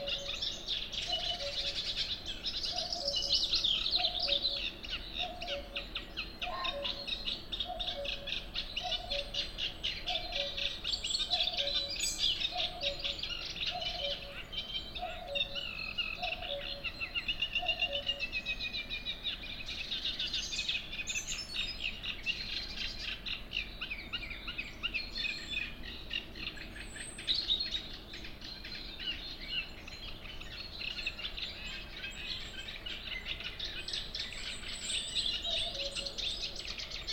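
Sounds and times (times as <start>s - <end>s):
cuckoo low paired notes: 0.0s - 18.5s, 31.0s - 37.1s
chirping and warbling small birds: 0.0s - 37.1s.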